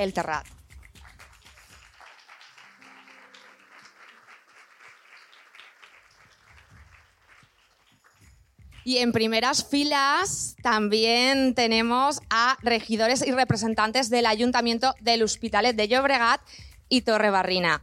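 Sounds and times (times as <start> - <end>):
speech: 0.0 - 0.6, 8.8 - 17.8
audience applause: 1.0 - 8.2.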